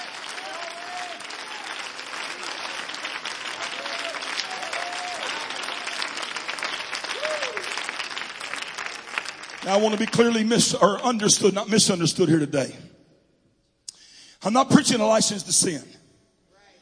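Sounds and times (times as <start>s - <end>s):
audience clapping hands: 0.0s - 11.3s
speech: 9.7s - 12.9s, 14.4s - 16.0s.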